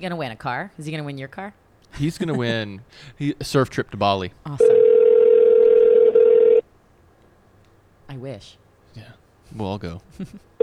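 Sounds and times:
speech: 0:00.0 - 0:04.8, 0:08.2 - 0:10.6
electronic telephone tone: 0:04.6 - 0:06.6.

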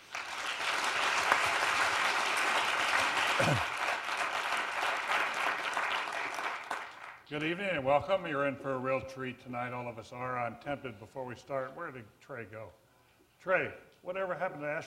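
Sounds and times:
audience applause welcoming speakers at an Institute of Politics forum: 0:00.0 - 0:07.2
speech: 0:03.4 - 0:03.7, 0:07.3 - 0:12.8, 0:13.4 - 0:14.8.

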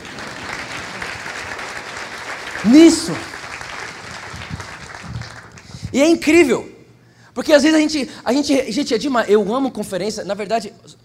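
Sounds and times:
audience applause: 0:00.0 - 0:05.8
speech: 0:02.6 - 0:03.4, 0:06.0 - 0:06.7, 0:07.4 - 0:11.0.

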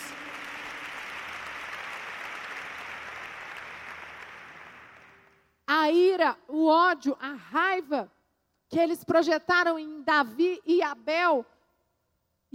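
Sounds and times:
loud round of applause: 0:00.0 - 0:05.5
speech: 0:05.9 - 0:11.5.

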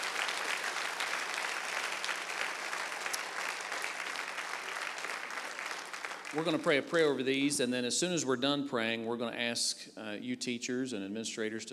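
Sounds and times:
applause from church audience: 0:00.0 - 0:07.2
speech: 0:06.3 - 0:11.7.

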